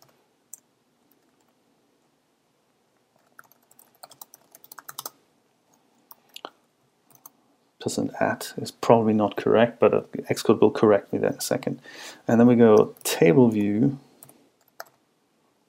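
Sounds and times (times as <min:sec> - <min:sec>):
computer keyboard typing code in Xcode: 0:03.2 - 0:05.2, 0:07.1 - 0:07.4, 0:14.2 - 0:15.0
speech: 0:07.8 - 0:14.0.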